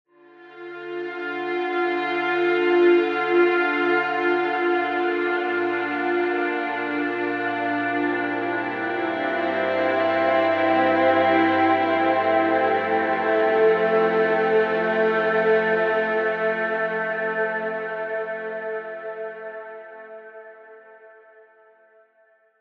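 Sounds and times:
analog strings: 0:02.0 - 0:18.5.

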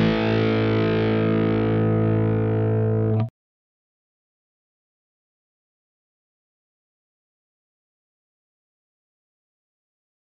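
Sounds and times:
Epiphone high-gain electric guitar rhythm: 0:00.0 - 0:03.3.

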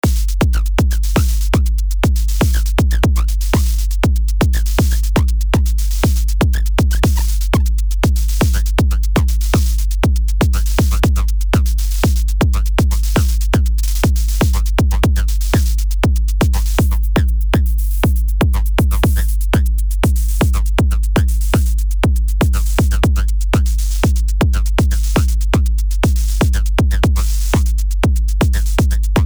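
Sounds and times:
drums: 0:00.0 - 0:29.2.

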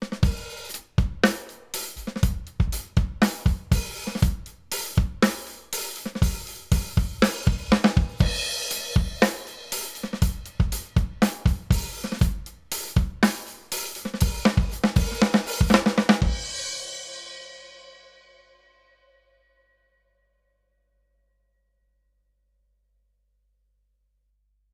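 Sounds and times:
drums processed through Rupert Neve Designs 5254: 0:00.0 - 0:17.5.

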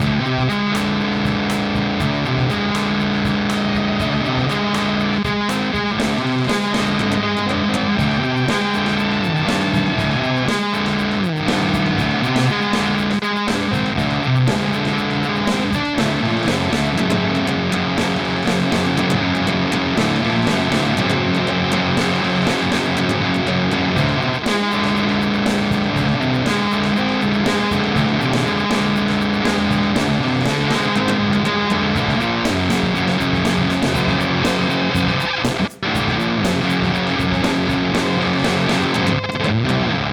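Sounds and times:
Beetronics Vezzpa fuzz effect: 0:00.0 - 0:40.0.

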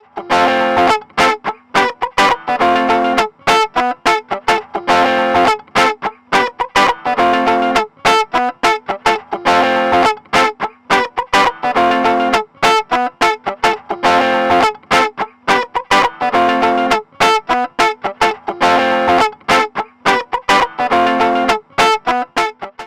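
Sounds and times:
Ableton fuzz pedal guitar: 0:00.0 - 0:22.8.

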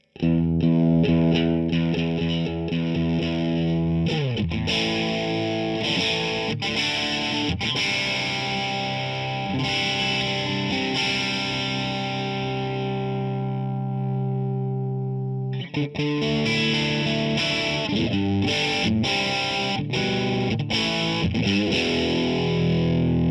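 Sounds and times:
vintage Tele electric guitar: 0:00.0 - 0:23.3.

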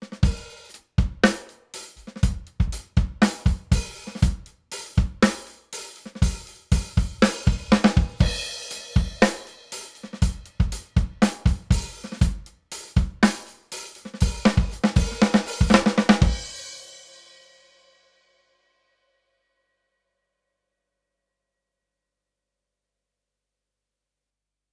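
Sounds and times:
saturated drums: 0:00.0 - 0:17.2.

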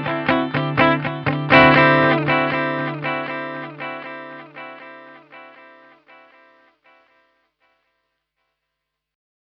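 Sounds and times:
delay effect: 0:00.0 - 0:06.6.

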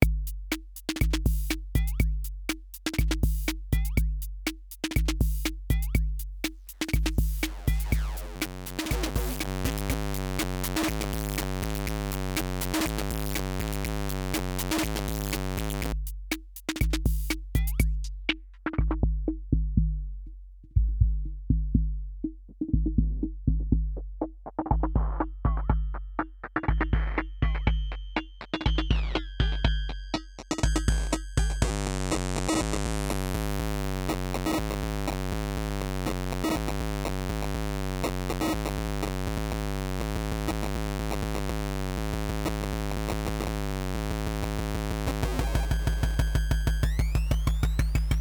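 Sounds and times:
drum machine: 0:00.0 - 0:48.2.

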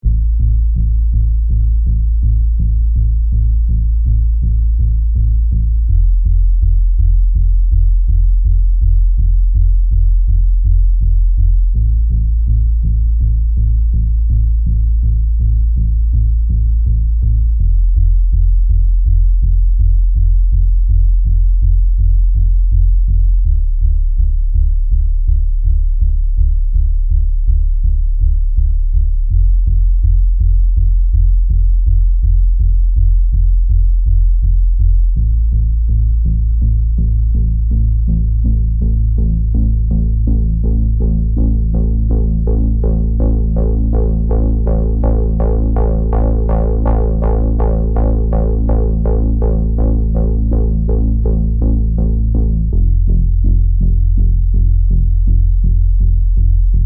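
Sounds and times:
dry sequenced bass: 0:00.0 - 0:56.8.

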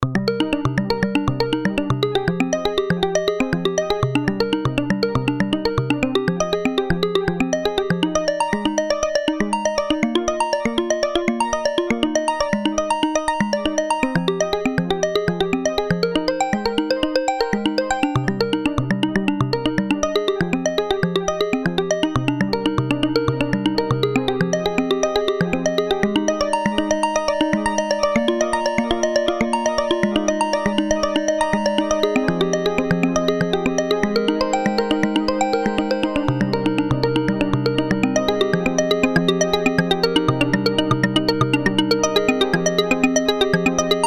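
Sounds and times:
Behringer UB-Xa synth sequence and arpeggio: 0:00.0 - 0:44.0.

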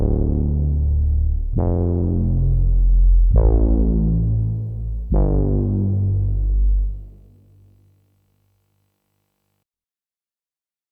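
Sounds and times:
filtered bass pad: 0:00.0 - 0:07.8.

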